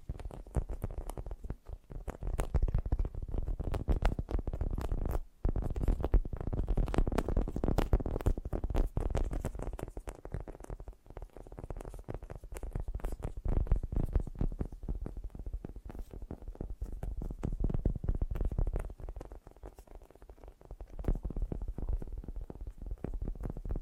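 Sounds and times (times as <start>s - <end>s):
fast gentle tapping: 0.0s - 23.8s.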